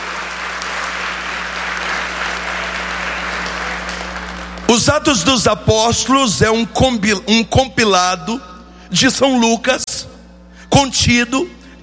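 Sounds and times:
audience applauding: 0.0s - 4.8s
speech: 4.7s - 10.1s, 10.8s - 11.6s.

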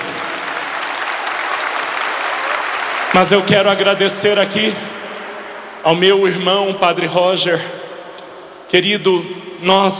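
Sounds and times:
congregation applauding at Holy Mass: 0.0s - 5.9s
speech: 3.1s - 5.0s, 5.8s - 7.8s, 8.7s - 9.9s.

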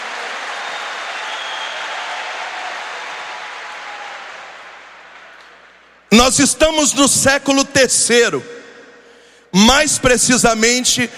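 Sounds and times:
audience applause: 0.0s - 5.8s
speech: 6.1s - 8.6s, 9.5s - 11.1s.

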